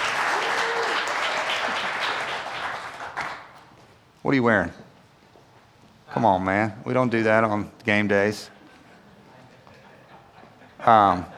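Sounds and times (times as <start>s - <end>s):
laughter: 0.0s - 3.1s, 8.5s - 11.3s
crowd audience applauding: 0.0s - 3.6s
speech: 4.2s - 4.8s, 6.1s - 8.6s, 10.8s - 11.3s.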